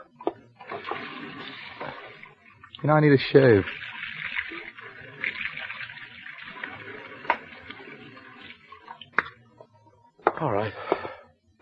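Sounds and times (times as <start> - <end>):
tap water running as a man washes his hands: 0.0 - 9.5
speech: 2.8 - 3.8.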